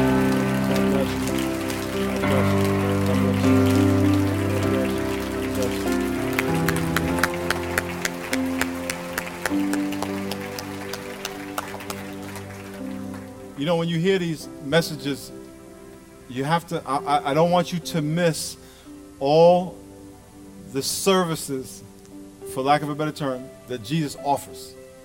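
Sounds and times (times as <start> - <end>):
audience applause: 0.0 - 13.6
speech: 13.7 - 15.4, 16.3 - 18.6, 19.2 - 19.8, 20.7 - 21.9, 22.6 - 24.8.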